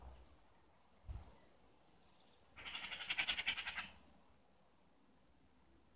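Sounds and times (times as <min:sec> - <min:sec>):
bird call: 0:02.6 - 0:04.0.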